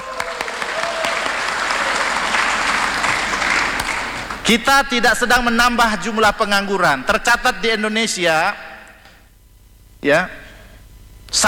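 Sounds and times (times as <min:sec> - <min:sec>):
audience applause: 0:00.0 - 0:04.4
speech: 0:04.5 - 0:08.7, 0:10.0 - 0:10.4.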